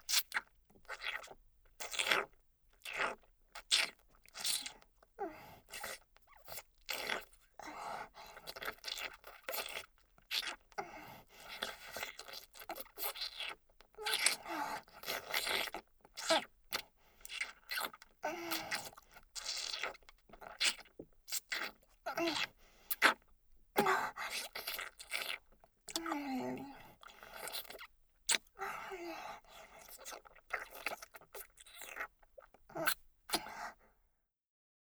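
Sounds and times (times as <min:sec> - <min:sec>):
looped teasing fellatio ASMR mouth sounds: 0:00.1 - 0:33.8.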